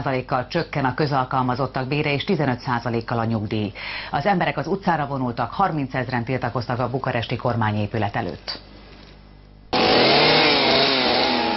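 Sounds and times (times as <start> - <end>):
speech: 0.0 - 8.7
chainsaw running: 9.7 - 11.5.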